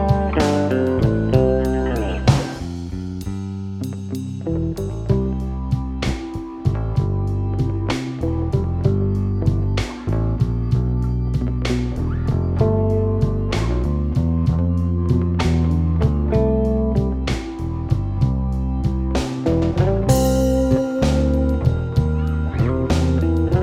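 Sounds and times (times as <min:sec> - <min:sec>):
blues bass: 0:00.0 - 0:23.6.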